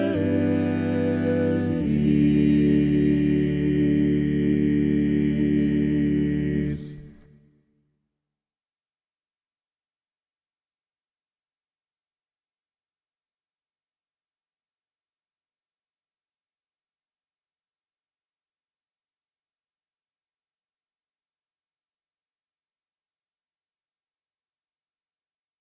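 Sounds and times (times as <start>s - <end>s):
balanced chorale music: 0.0s - 7.2s.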